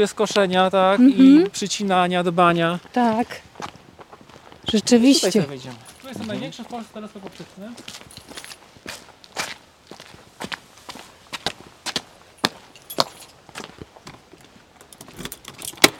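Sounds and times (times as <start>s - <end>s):
speech: 0.0s - 3.7s, 4.7s - 8.3s
keys jangling while unlocking a door: 5.8s - 6.3s, 8.1s - 8.6s, 12.4s - 13.4s, 14.8s - 15.9s
key working a lock: 14.8s - 15.9s.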